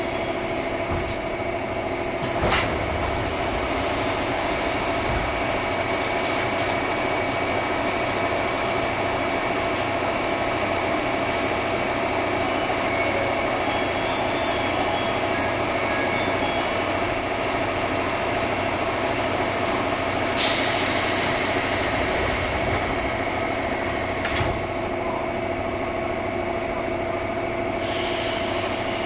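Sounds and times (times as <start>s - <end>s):
JR 201-series train rumbling: 0.0s - 29.0s
single clunks: 0.7s - 1.5s, 2.1s - 7.6s.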